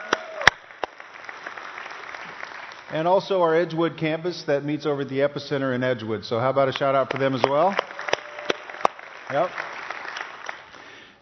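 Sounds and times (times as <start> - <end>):
audience applauding: 0.0 - 3.6, 6.8 - 11.1
speech: 2.9 - 7.9, 9.3 - 9.7.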